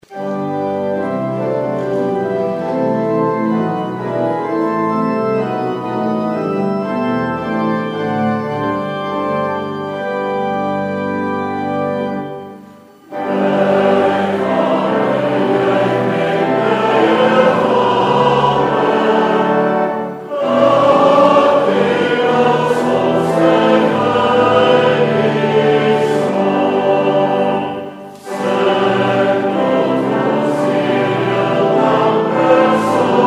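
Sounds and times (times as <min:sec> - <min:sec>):
congregation singing: 0:00.0 - 0:33.2.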